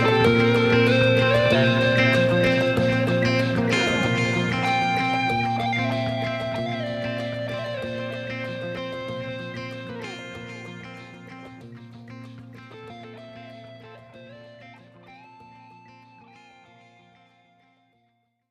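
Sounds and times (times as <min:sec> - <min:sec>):
ringtone: 0:00.0 - 0:10.4.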